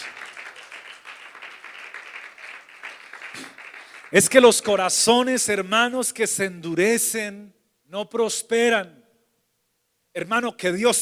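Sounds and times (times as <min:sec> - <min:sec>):
audience applause: 0:00.0 - 0:04.6
speech: 0:04.1 - 0:09.0, 0:10.1 - 0:10.9.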